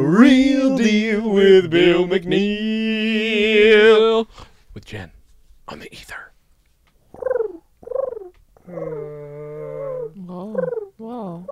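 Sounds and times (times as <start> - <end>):
speech: 0.1 - 6.3
werewolf howl sound effect: 8.6 - 10.2.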